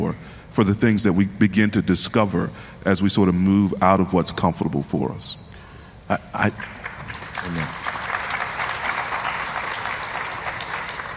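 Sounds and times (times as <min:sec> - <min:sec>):
speech: 0:00.1 - 0:05.4, 0:06.1 - 0:06.8
audience clapping: 0:06.4 - 0:11.1.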